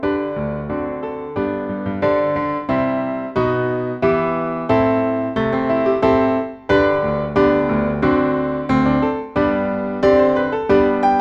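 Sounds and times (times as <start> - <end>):
musical accompaniment: 0.0 - 11.2.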